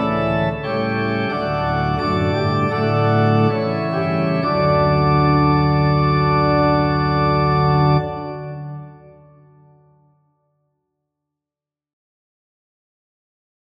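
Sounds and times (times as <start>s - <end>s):
organ: 0.0s - 9.8s.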